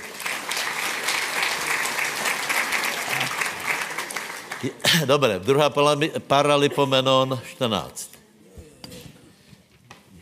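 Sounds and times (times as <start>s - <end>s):
audience applause: 0.0s - 4.9s
speech: 4.6s - 8.1s.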